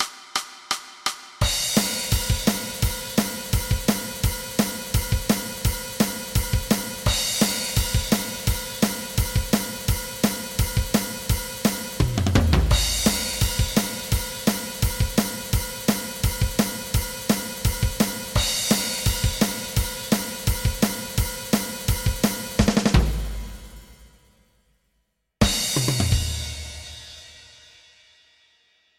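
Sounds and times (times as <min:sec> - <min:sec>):
drum: 0:00.0 - 0:24.2, 0:25.4 - 0:27.6.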